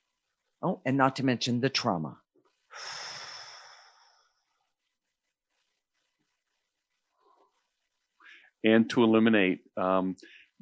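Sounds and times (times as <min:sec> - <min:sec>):
speech: 0:00.6 - 0:02.2, 0:08.6 - 0:10.6
person taking a deep breath: 0:02.7 - 0:04.5.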